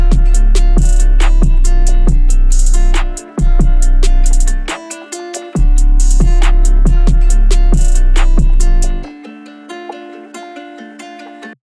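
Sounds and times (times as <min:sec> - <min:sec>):
31 to 35 Hz low bass tone: 0:00.0 - 0:04.7, 0:05.6 - 0:09.0.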